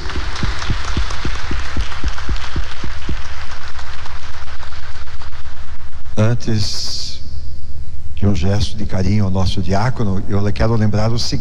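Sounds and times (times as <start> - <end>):
audience applause: 0.0 - 5.7
speech: 6.2 - 7.0, 8.2 - 11.3.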